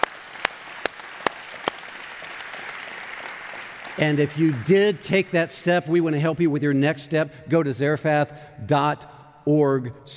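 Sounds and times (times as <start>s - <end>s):
church congregation hand clapping: 0.0s - 5.3s
speech: 4.0s - 10.1s.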